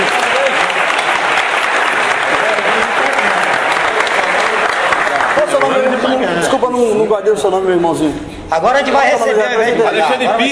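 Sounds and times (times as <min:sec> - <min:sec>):
audience applause: 0:00.0 - 0:06.2
speech: 0:07.1 - 0:10.5.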